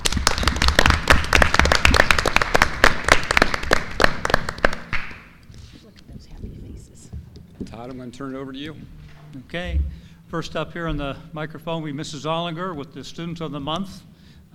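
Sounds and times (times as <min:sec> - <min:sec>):
round of applause: 0:00.0 - 0:05.4
speech: 0:07.8 - 0:14.5.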